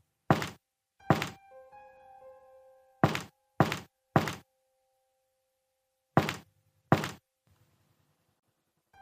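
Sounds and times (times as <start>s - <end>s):
heavy knocks on a door: 0.3s - 1.4s, 3.0s - 4.4s, 6.2s - 7.2s.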